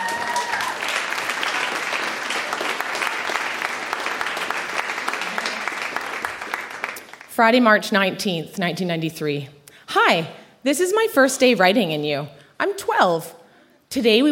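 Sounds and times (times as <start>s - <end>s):
audience applause welcoming a guest onto a live stage: 0.0s - 7.3s
speech: 7.4s - 14.3s.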